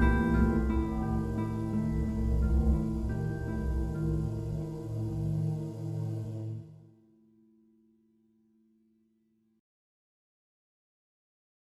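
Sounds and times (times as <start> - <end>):
menacing sound: 0.0 - 6.8.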